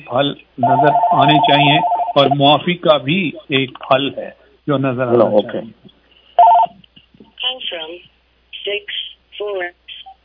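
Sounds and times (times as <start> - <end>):
speech: 0.0 - 5.9
bell ringing signalling time is up: 0.6 - 2.4.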